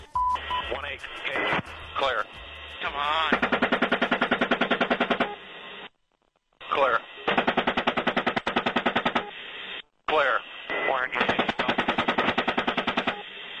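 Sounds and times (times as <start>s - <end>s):
garbled radio voice crackling: 0.6s - 3.4s, 6.6s - 7.3s, 10.1s - 12.2s
speech: 0.7s - 3.6s
Apache helicopter machine gun fire: 3.3s - 5.4s, 7.3s - 9.3s, 11.2s - 13.2s.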